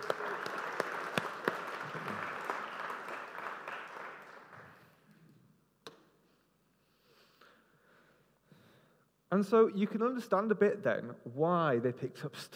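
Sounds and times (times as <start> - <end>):
crowd applauding: 0.0 - 5.0
speech: 9.3 - 12.5.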